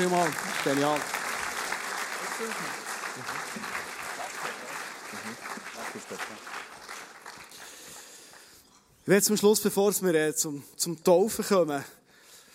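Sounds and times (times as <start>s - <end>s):
speech: 0.0s - 1.2s, 2.4s - 3.8s, 5.2s - 6.8s, 9.0s - 12.0s
audience applause: 0.0s - 8.6s.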